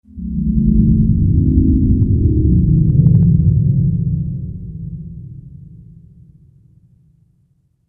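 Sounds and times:
spectral horror ghost sound effect: 0:00.1 - 0:05.0.

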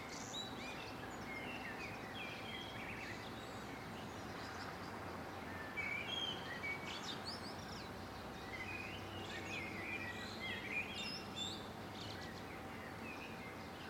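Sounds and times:
birds whistling and chirping in a residential area in the morning: 0:00.0 - 0:13.8.

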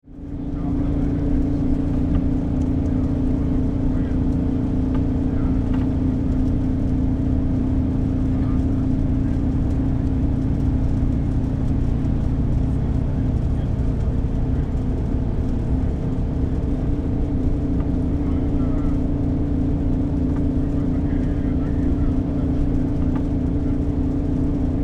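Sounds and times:
industrial fan blower running in a factory: 0:00.1 - 0:24.8.

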